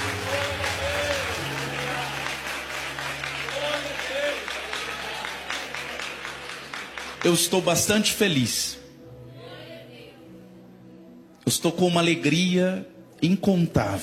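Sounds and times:
audience applauding: 0.0 - 8.4
speech: 7.2 - 8.8, 11.5 - 14.0.

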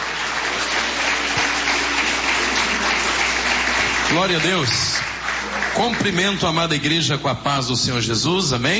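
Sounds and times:
audience applauding: 0.0 - 6.9
speech: 4.1 - 5.1, 5.8 - 8.7.

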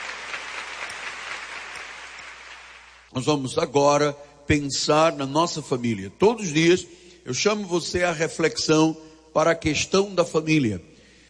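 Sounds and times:
audience applauding: 0.0 - 3.1
speech: 3.1 - 10.9.

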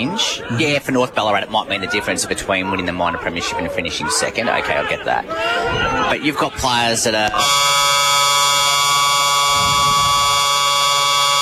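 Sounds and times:
speech: 0.0 - 8.1
long football ground siren: 7.4 - 11.4.

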